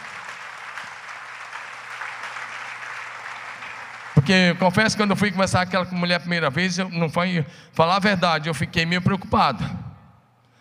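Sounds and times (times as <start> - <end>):
audience applause: 0.0 - 5.0
speech: 4.2 - 9.8.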